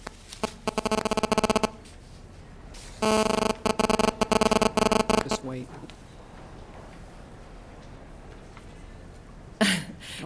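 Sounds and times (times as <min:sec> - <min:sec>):
mobile phone ringing: 0:00.4 - 0:01.8, 0:03.0 - 0:05.5.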